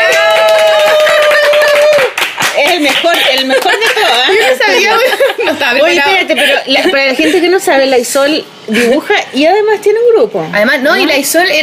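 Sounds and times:
hand clapping: 0.0 - 4.2
laughter: 2.8 - 7.6
speech: 5.5 - 11.6.

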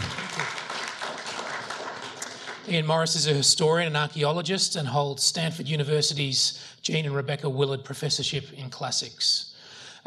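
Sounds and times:
audience applause welcoming a speaker: 0.0 - 3.2
speech: 2.7 - 10.0.

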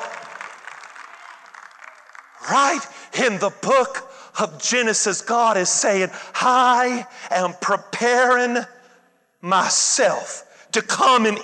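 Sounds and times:
audience clapping hands: 0.0 - 2.8
speech: 2.5 - 8.8, 9.4 - 11.4.

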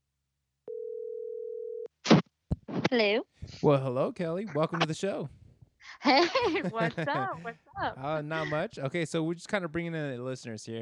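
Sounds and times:
telephone dial tone while placing a call: 0.7 - 1.9
speech: 2.7 - 5.4, 6.0 - 10.8
laughter: 4.4 - 5.2, 6.0 - 8.7.

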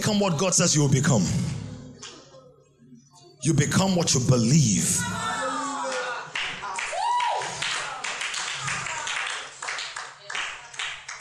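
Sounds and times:
speech: 0.1 - 1.6, 3.4 - 5.2
audience clapping: 5.9 - 11.1.

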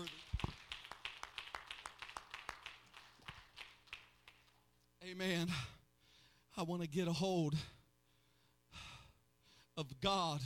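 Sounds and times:
audience clapping: 0.0 - 4.7
speech: 5.1 - 5.7, 6.6 - 7.8, 9.8 - 10.4.

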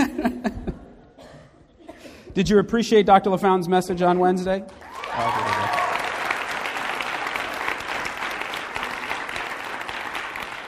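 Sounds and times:
speech: 2.4 - 5.5
crowd applauding: 4.7 - 10.6.

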